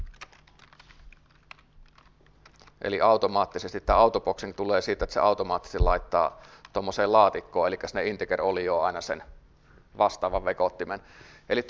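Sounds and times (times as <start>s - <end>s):
typing on a computer keyboard: 0.0s - 2.8s
low steady hum: 0.0s - 11.6s
speech: 2.8s - 9.4s, 10.0s - 11.6s.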